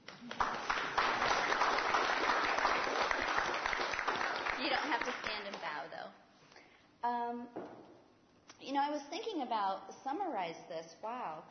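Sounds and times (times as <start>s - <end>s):
audience applause for the couples: 0.0s - 5.7s
speech: 9.2s - 11.4s.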